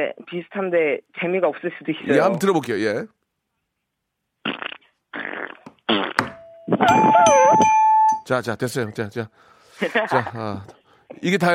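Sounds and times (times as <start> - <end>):
speech: 0.0 - 3.2, 4.4 - 7.7, 8.3 - 11.5
mouth-made fart noises: 4.4 - 7.2
laughter: 9.8 - 10.7.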